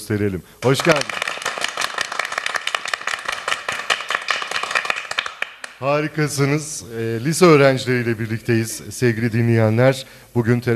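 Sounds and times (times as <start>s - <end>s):
speech: 0.1s - 1.3s, 5.8s - 10.7s
group applause: 0.6s - 5.9s.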